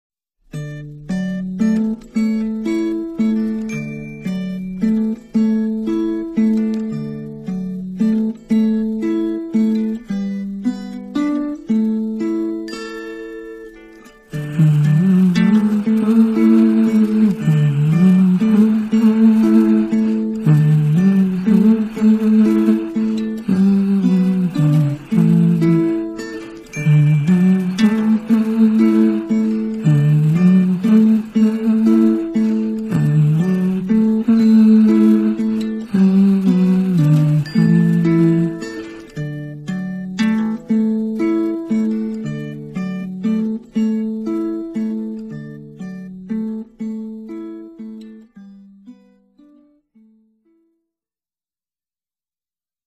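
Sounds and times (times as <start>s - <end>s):
instrumental music: 0.4s - 50.8s.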